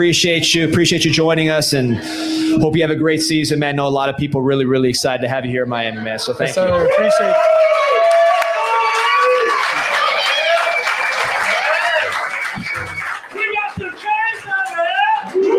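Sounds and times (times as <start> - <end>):
speech: 0.0 - 7.9
crowd cheering: 6.3 - 15.5.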